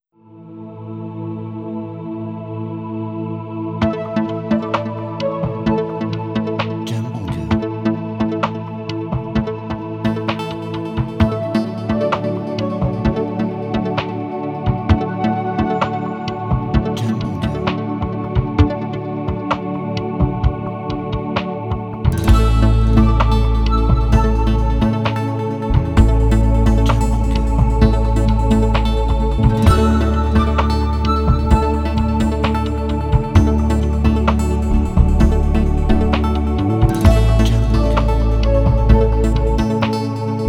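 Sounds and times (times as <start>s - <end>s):
corporate music: 3.7s - 40.4s.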